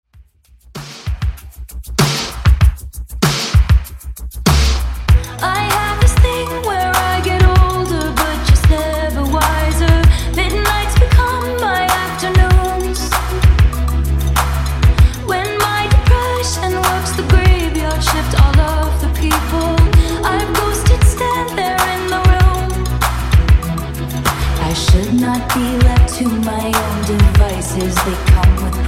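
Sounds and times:
Top40 80s style pop music at 97 Bpm: 0:00.8 - 0:28.8.

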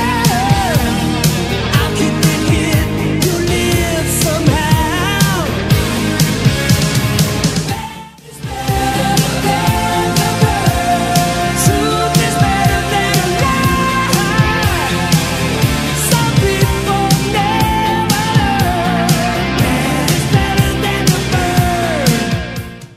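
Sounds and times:
80s rock drums: 0:00.0 - 0:22.9.

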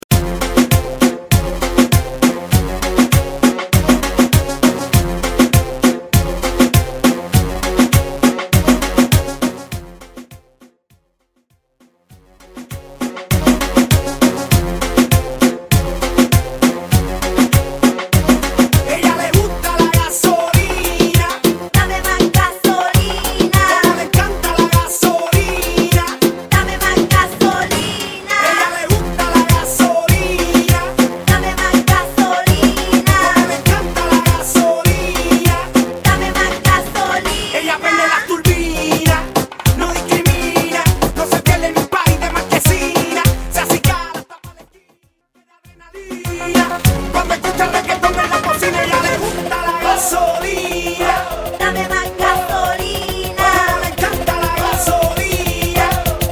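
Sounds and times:
moombahton dance music: 0:00.0 - 0:10.3, 0:12.4 - 0:56.3.

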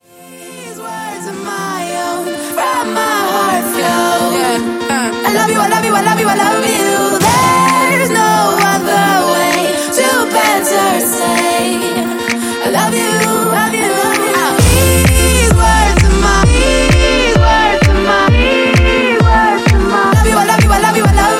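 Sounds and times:
future house music: 0:01.8 - 0:21.3.

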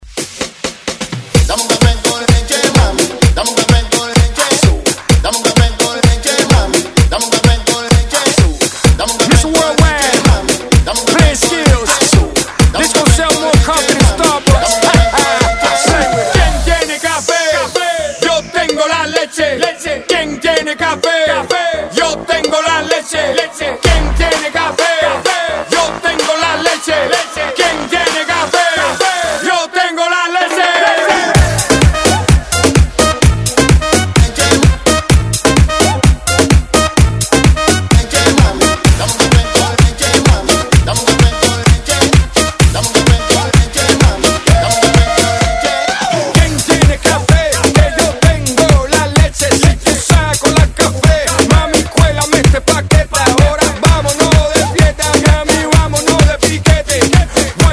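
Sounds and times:
Latin dance music: 0:00.0 - 0:57.7.

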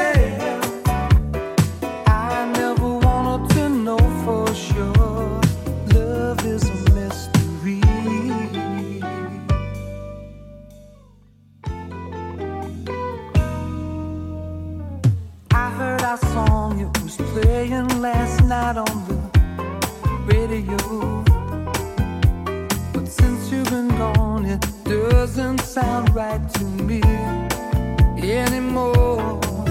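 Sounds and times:
80s Redrum drum machine beat: 0:00.0 - 0:08.2, 0:15.1 - 0:29.6.

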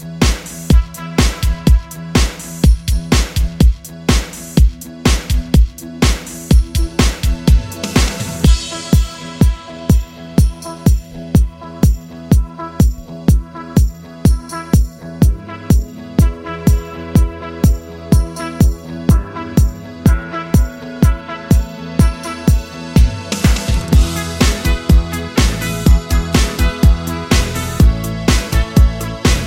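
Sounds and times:
eighties style drum machine beat: 0:00.0 - 0:29.4.

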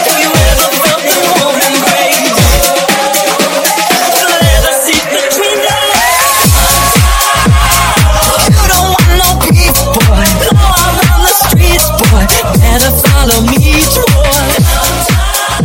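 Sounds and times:
music at 118 BPM in B flat minor: 0:00.0 - 0:15.6.

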